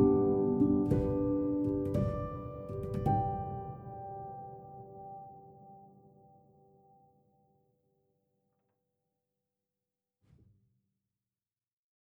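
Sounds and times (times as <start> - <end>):
soft instrumental music: 0.0 - 6.0.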